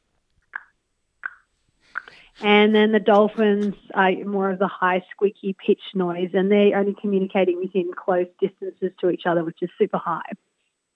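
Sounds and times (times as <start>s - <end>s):
voice imitating sperm whale clicks: 0.5s - 2.4s
speech: 2.4s - 10.5s.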